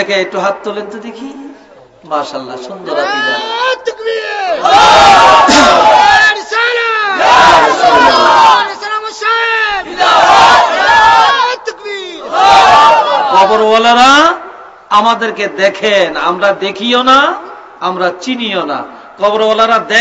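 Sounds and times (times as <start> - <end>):
speech: 0.0 - 6.4, 13.3 - 19.9
congregation shouting back to a preacher: 2.8 - 13.7.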